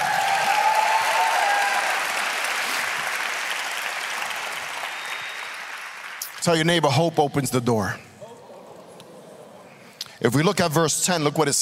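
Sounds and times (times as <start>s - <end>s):
audience clapping hands: 0.0s - 7.0s
speech: 6.4s - 8.1s, 10.2s - 11.6s.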